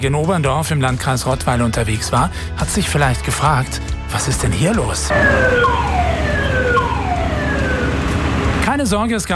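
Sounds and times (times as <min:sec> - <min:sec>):
speech: 0:00.0 - 0:06.0, 0:08.8 - 0:09.3
emergency vehicle siren: 0:05.1 - 0:08.7.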